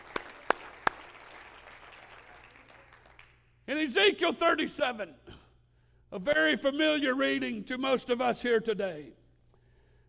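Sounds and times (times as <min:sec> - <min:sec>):
audience clapping hands: 0:00.0 - 0:03.6
speech: 0:03.7 - 0:05.4, 0:06.1 - 0:09.2.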